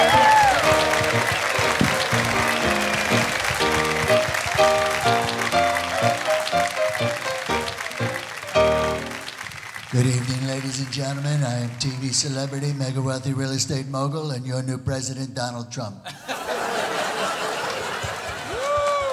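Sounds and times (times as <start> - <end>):
music at a live show: 0.0 - 9.3
audience applauding to welcome a performing group at a live show: 0.0 - 12.8, 16.2 - 19.1
speech: 10.0 - 16.5
laughter: 16.1 - 19.1.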